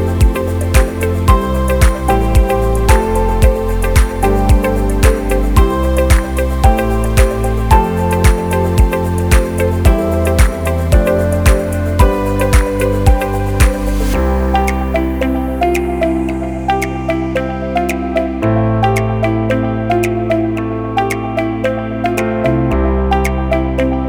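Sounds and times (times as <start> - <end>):
ambient corporate background music: 0.0 - 24.0.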